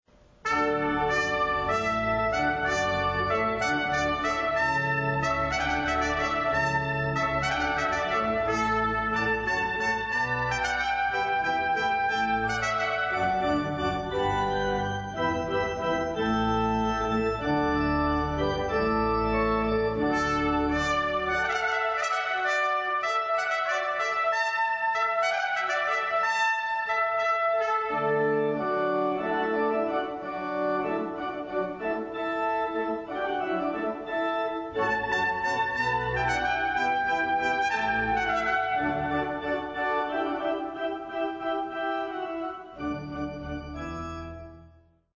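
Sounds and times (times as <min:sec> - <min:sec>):
hornpipe tune: 0:00.4 - 0:44.6.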